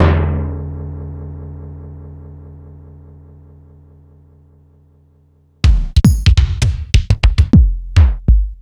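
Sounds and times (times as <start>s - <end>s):
Korg 05R-W kick drum: 5.6s - 8.6s.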